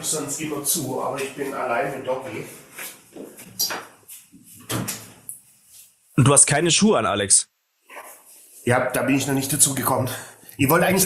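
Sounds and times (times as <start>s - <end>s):
speech: 0.0s - 3.8s, 6.2s - 7.5s, 8.6s - 11.0s
door being closed: 4.6s - 5.2s.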